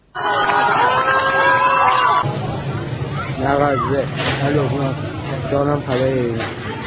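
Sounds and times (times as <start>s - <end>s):
protest crowd noise from played footage: 0.0s - 6.8s.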